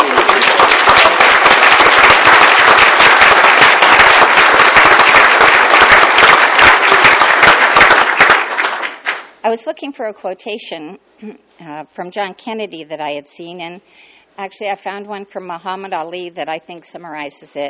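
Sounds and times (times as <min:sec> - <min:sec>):
round of applause: 0:00.0 - 0:09.4
speech: 0:09.5 - 0:17.6.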